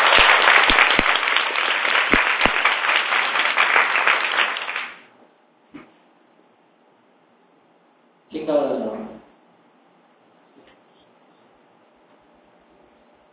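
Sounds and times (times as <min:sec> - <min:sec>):
audience applause: 0:00.0 - 0:05.1.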